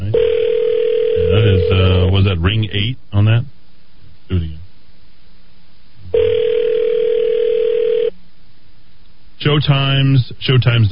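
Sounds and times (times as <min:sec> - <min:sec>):
fax machine tone over a phone line: 0:00.2 - 0:02.1, 0:06.2 - 0:08.1
speech: 0:02.2 - 0:03.5, 0:09.6 - 0:10.8.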